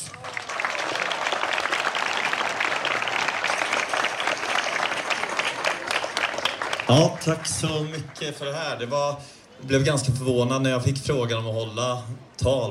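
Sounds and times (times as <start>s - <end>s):
audience applause: 0.0s - 8.9s
speech: 6.9s - 12.6s.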